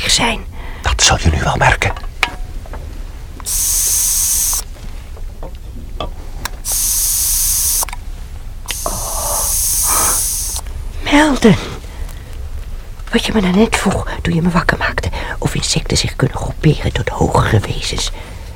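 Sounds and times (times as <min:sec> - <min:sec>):
speech: 0:00.1 - 0:02.1, 0:11.3 - 0:11.7, 0:13.1 - 0:18.4
aerosol spray can spraying: 0:03.4 - 0:04.7, 0:06.6 - 0:07.9, 0:08.7 - 0:10.6.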